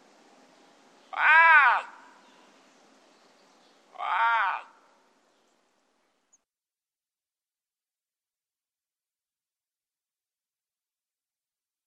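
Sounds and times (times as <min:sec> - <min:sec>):
lynx giving harmonic meowing calls: 0:01.1 - 0:02.0, 0:04.0 - 0:04.8.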